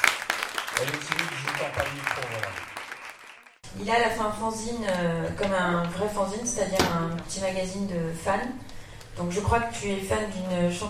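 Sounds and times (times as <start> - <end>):
audience applause: 0.0 - 3.6
speech: 0.8 - 2.1, 3.8 - 8.6, 9.2 - 10.8.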